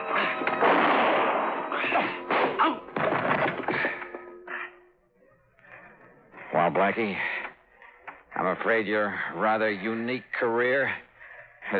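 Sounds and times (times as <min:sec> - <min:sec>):
piano bench kicked against a man's legs crashing: 0:00.1 - 0:04.3
speech: 0:06.7 - 0:07.3, 0:08.5 - 0:11.1.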